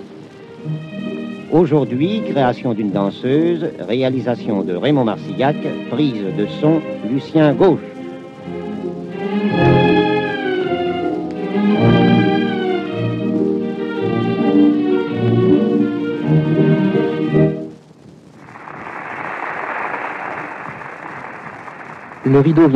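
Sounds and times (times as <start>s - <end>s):
orchestral music: 0.0s - 17.7s
speech: 0.6s - 7.9s, 22.3s - 22.7s
theatre audience applause: 9.2s - 12.9s, 18.4s - 22.7s.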